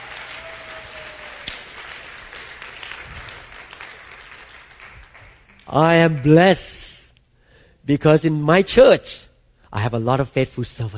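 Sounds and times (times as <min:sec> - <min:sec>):
audience clapping hands: 0:00.0 - 0:06.6
speech: 0:05.7 - 0:06.8, 0:07.9 - 0:10.9.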